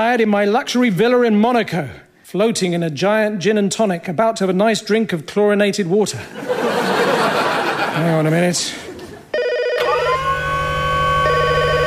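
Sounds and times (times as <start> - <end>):
speech: 0.0 - 7.1, 8.0 - 8.8
laughter: 6.2 - 9.3
telephone ringing with electronic trill: 9.4 - 11.8.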